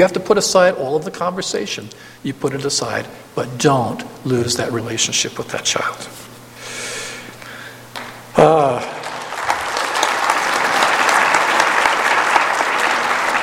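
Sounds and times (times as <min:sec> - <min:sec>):
speech: 0:00.0 - 0:06.3, 0:08.4 - 0:09.0
audience applause: 0:08.6 - 0:13.4.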